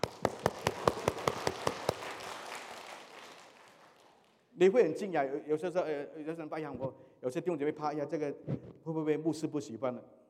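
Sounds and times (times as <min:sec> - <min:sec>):
group clapping in unison: 0:00.0 - 0:04.5
speech: 0:04.6 - 0:10.2.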